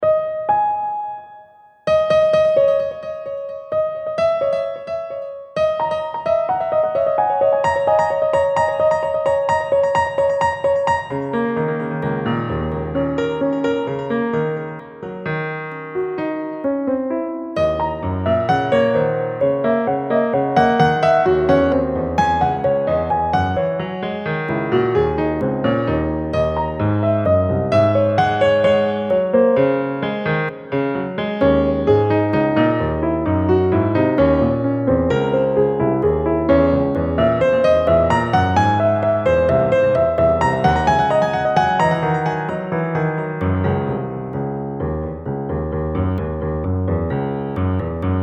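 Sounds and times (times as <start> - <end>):
130 bpm music track: 0.1 - 48.2.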